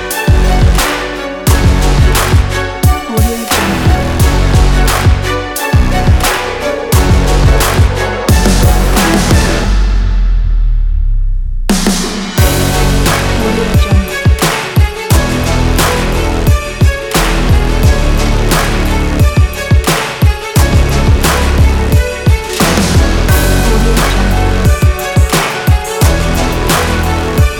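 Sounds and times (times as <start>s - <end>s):
epic sport trap dramatic workout music: 0.0s - 27.5s.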